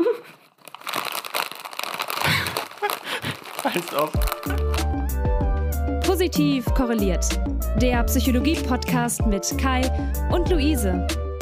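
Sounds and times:
bag of crisps crinkling and rustling as a sound effect: 0.2s - 5.1s
speech: 3.6s - 5.2s, 6.2s - 11.2s.

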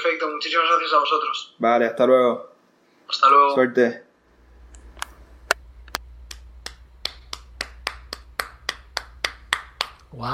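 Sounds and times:
speech: 0.0s - 2.5s, 3.1s - 4.1s, 10.2s - 10.3s
people clapping: 6.3s - 10.3s.

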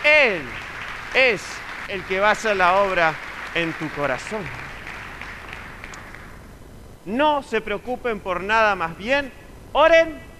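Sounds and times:
speech: 0.0s - 4.6s, 7.1s - 10.3s
crowd applauding: 0.0s - 6.4s.

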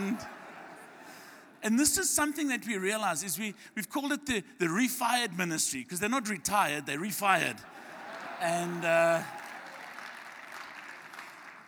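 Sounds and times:
light applause from elderly church audience members: 0.0s - 1.5s, 6.9s - 11.6s
laughter: 0.0s - 3.0s, 6.2s - 10.5s
speech: 1.6s - 7.8s, 8.4s - 9.4s.

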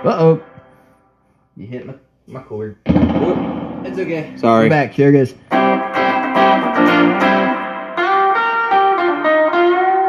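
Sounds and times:
speech: 0.0s - 0.5s, 1.6s - 5.9s
electric guitar through J Rocket spring reverb pedal cranked up: 2.9s - 10.0s.

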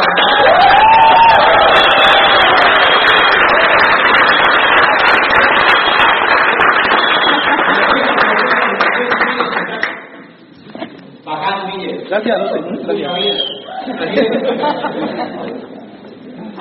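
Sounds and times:
cheers and whoops: 0.0s - 3.7s
crowd applause: 0.0s - 10.0s
laughter: 7.0s - 8.8s, 13.6s - 16.5s
speech: 12.2s - 15.7s.

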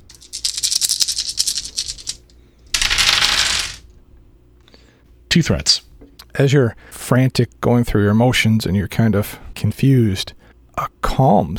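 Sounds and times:
dice rattling: 0.0s - 3.8s
speech: 5.4s - 5.8s, 6.4s - 11.5s.

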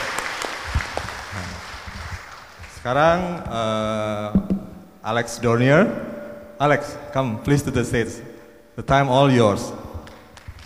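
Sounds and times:
audience applause at a stage event: 0.0s - 2.9s
speech: 2.8s - 9.8s.

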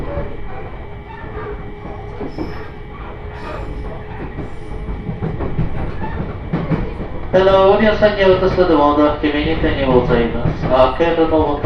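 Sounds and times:
faint train wheel squeal: 0.0s - 4.9s
Joban Line train running in toward its terminal station at Haranomachi: 0.0s - 11.6s
rhythmic rail clicks: 0.0s - 11.6s
speech: 7.4s - 11.6s.

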